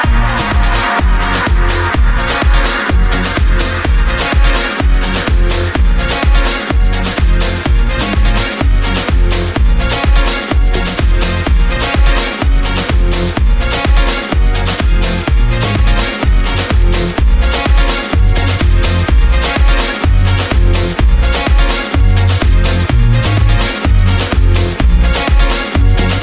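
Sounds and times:
electronic dance ringtone: 0:00.1 - 0:26.2.

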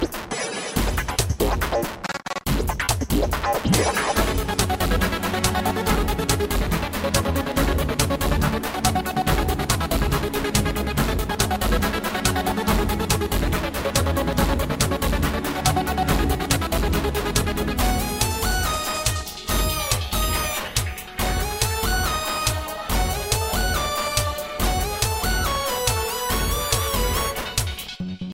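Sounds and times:
fast music: 0:00.0 - 0:28.3.

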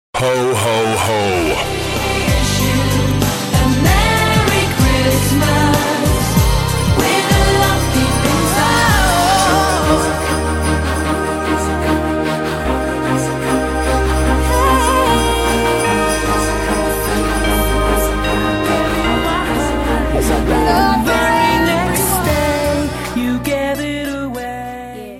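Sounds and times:
Christmas music mix: 0:00.2 - 0:25.1.

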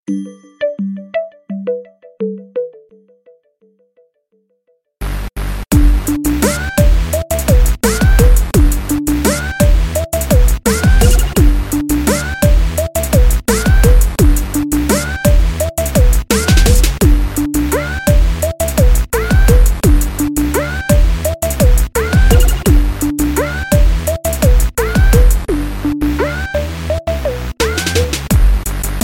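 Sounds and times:
hip hop remix: 0:05.0 - 0:29.0.

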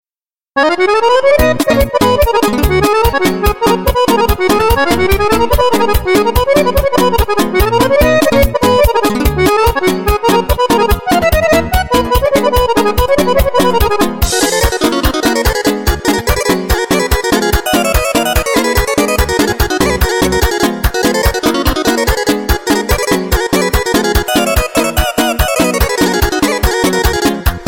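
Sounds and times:
instrumental music: 0:00.6 - 0:27.6.

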